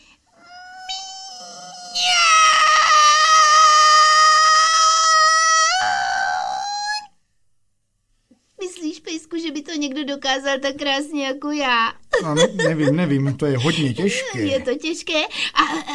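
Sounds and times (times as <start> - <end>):
person imitating a cat meowing: 0.4 - 7.1
speech: 10.2 - 15.9
laughter: 12.2 - 14.6.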